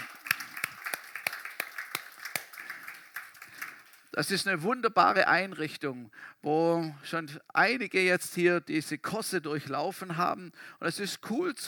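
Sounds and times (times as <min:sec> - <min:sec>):
audience applause: 0:00.0 - 0:04.1
speech: 0:04.2 - 0:11.6.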